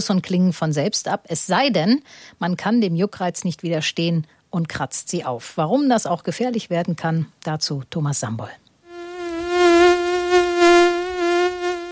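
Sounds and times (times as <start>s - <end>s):
speech: 0.0s - 8.6s
mosquito buzzing in flight: 8.8s - 11.9s.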